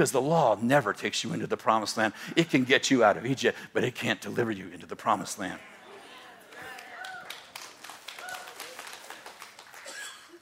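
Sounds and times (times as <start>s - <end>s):
speech: 0.0s - 5.7s
audience clapping: 6.4s - 10.4s.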